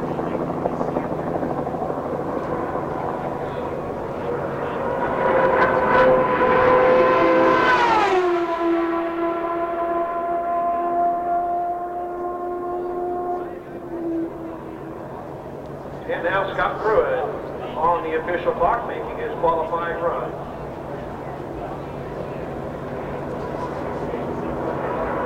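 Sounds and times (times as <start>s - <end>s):
voices chattering: 0.0s - 5.4s, 12.8s - 25.2s
1995 CART IndyCar turbocharged V8 engine whine at Phoenix International Raceway: 0.0s - 25.2s.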